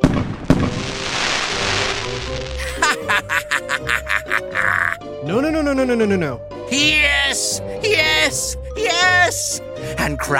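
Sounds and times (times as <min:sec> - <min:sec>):
fireworks exploding: 0:00.0 - 0:02.6
laughter: 0:02.6 - 0:05.0
speech: 0:05.8 - 0:10.3.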